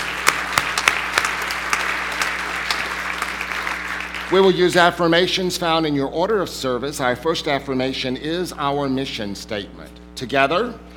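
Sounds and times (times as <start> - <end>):
audience clapping: 0.0 - 4.9
speech: 4.3 - 10.9.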